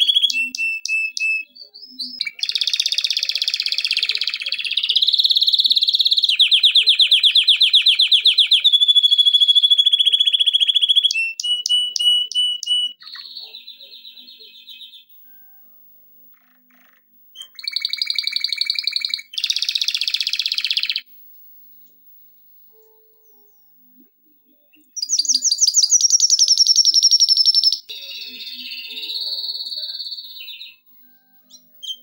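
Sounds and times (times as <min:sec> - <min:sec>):
canary singing chirps and trills: 0:00.0 - 0:15.3, 0:16.3 - 0:21.1, 0:23.1 - 0:32.0.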